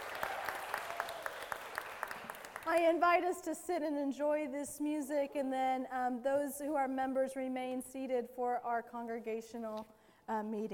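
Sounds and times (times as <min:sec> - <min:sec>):
audience applause: 0:00.0 - 0:02.8
speech: 0:02.7 - 0:10.7.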